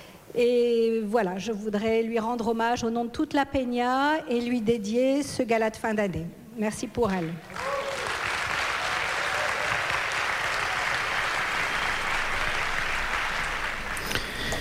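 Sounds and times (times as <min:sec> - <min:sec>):
speech: 0:00.4 - 0:07.7
audience applause: 0:07.5 - 0:14.5.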